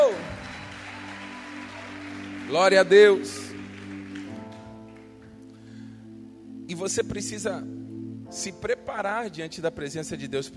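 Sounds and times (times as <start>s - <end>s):
audience applauding: 0.0s - 5.3s
speech: 2.5s - 3.5s, 6.7s - 10.5s.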